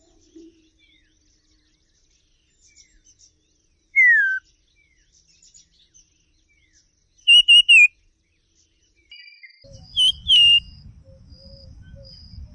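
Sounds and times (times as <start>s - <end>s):
common iora song: 4.0s - 4.5s, 7.3s - 7.9s, 9.2s - 12.5s.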